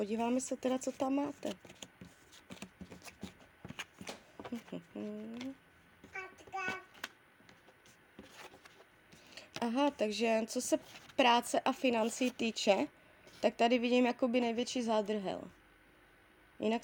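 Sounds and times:
speech: 0.0 - 1.9, 4.5 - 5.6, 9.6 - 15.6, 16.6 - 16.8
tarot cards being turned over: 0.6 - 5.6, 6.7 - 10.0.

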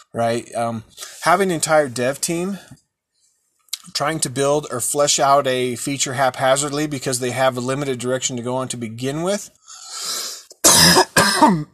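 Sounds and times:
speech: 0.1 - 2.8, 3.9 - 9.8, 10.7 - 11.7
person coughing: 10.6 - 11.7.

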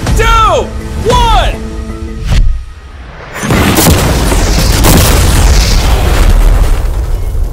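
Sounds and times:
speech: 0.6 - 1.6
car blown up by explosion: 3.4 - 7.5.

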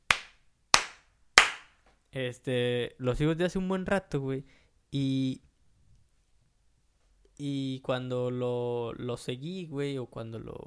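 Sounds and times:
sharp hand claps: 0.0 - 1.8
speech: 2.1 - 5.5, 7.4 - 10.6.

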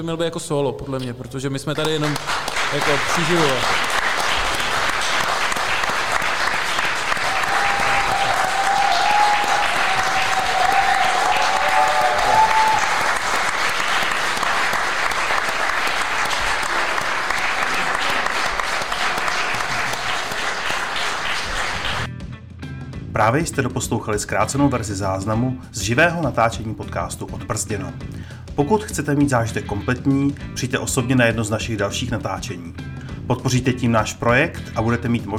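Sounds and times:
speech: 0.0 - 3.9, 23.3 - 35.3
live audience applause: 1.8 - 22.1.

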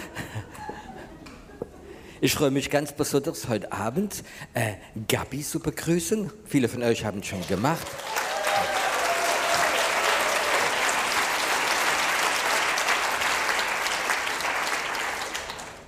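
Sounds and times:
speech: 2.2 - 8.2
crowd audience applause: 7.4 - 15.8.

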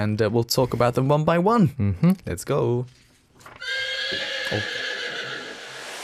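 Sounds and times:
speech: 0.0 - 3.8, 4.5 - 4.8
horse neighing: 3.5 - 5.7.

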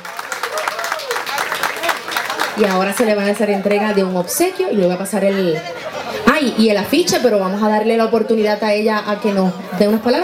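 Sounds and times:
audience applause: 0.0 - 4.5
speech: 2.6 - 5.8, 6.4 - 10.2
laughter: 5.2 - 6.6.

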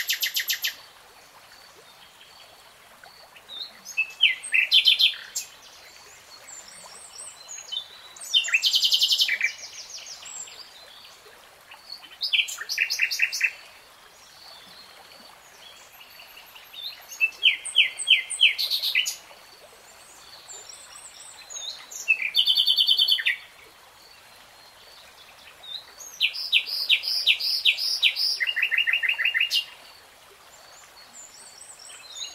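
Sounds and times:
nightingale song: 0.0 - 0.8, 3.4 - 5.6, 6.4 - 10.8, 11.7 - 13.7, 15.6 - 19.3, 20.0 - 23.5, 25.4 - 29.8, 31.0 - 32.3.

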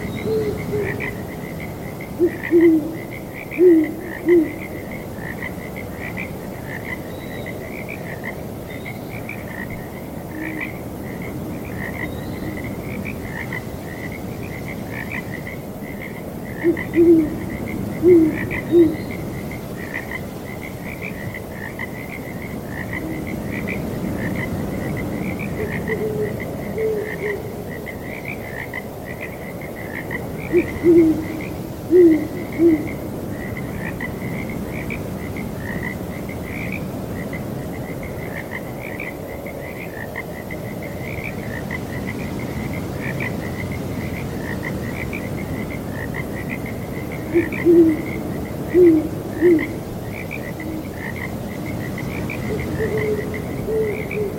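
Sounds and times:
frog chorus croaking and trilling: 0.0 - 54.3
soft wind noise: 0.0 - 54.3
owl hooting: 0.2 - 1.1, 2.2 - 3.0, 3.6 - 4.6, 16.6 - 17.4, 18.0 - 19.1, 25.6 - 27.6, 30.5 - 32.9, 47.2 - 49.8, 50.6 - 50.9, 52.5 - 54.3.

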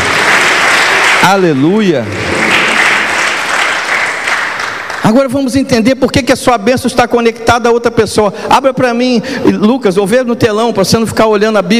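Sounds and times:
audience applauding: 0.0 - 5.4
speech: 1.3 - 2.3, 5.1 - 11.7.

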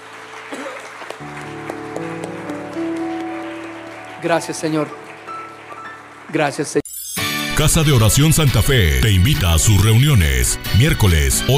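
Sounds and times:
audience applause: 0.0 - 6.8
speech: 4.2 - 5.0, 6.3 - 6.8, 7.6 - 11.5.

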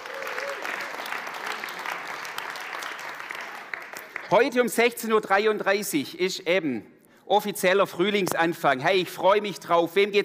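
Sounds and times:
applause: 0.0 - 4.8
speech: 4.3 - 10.2.

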